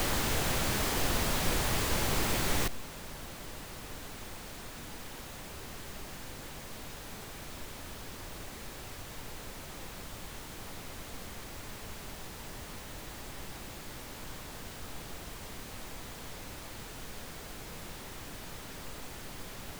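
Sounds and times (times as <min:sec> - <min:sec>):
pink noise UHJ test signal: 0:00.0 - 0:02.7.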